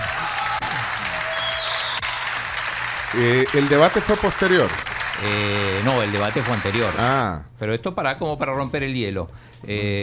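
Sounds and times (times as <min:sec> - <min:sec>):
deputies applauding in legislative chamber: 0:00.0 - 0:07.3
speech: 0:03.1 - 0:10.0.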